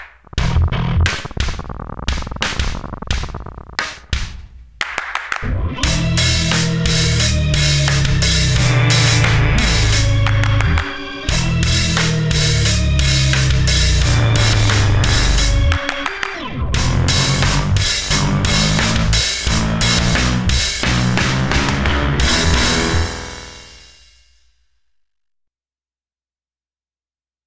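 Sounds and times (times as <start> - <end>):
bass: 0.3 - 3.9, 5.4 - 15.9, 16.5 - 24.0.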